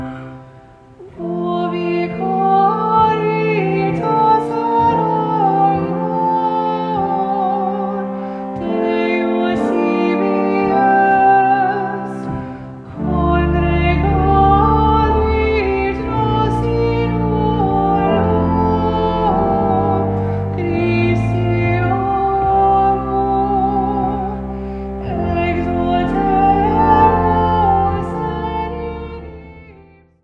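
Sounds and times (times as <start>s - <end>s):
choral chant: 1.2s - 29.7s.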